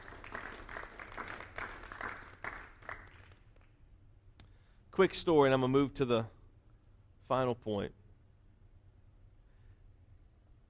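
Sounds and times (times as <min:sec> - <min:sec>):
audience clapping hands: 0:00.0 - 0:03.9
speech: 0:05.0 - 0:06.4, 0:07.3 - 0:08.0.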